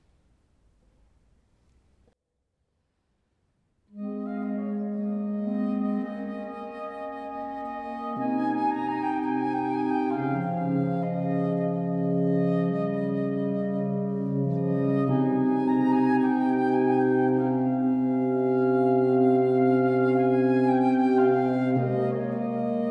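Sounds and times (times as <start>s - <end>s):
oboe: 4.0s - 22.8s.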